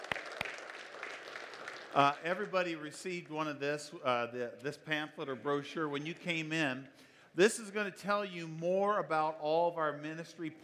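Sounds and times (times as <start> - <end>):
audience clapping: 0.0 - 3.4
speech: 2.0 - 10.6.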